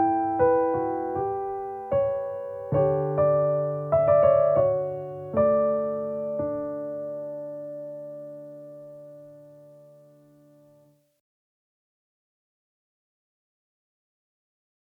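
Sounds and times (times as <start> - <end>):
aria on piano: 0.0 - 11.0.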